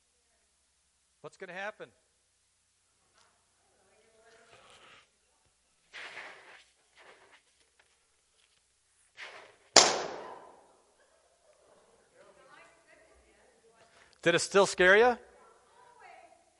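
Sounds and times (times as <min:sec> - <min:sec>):
speech: 0:01.2 - 0:02.1, 0:14.2 - 0:15.3
balloon popping: 0:09.2 - 0:10.7.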